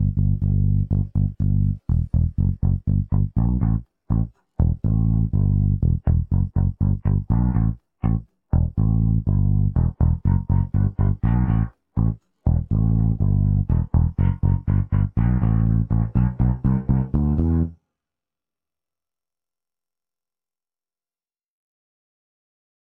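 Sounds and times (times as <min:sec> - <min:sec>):
bass: 0:00.0 - 0:17.8.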